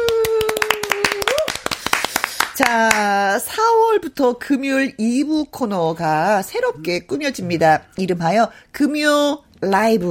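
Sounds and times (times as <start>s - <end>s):
applause: 0.0s - 3.0s
speech: 2.6s - 10.1s.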